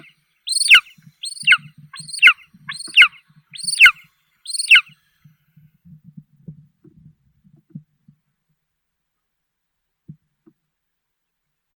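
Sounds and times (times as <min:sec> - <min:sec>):
golden eagle Aquila chrysaetos calling: 0:00.0 - 0:04.9.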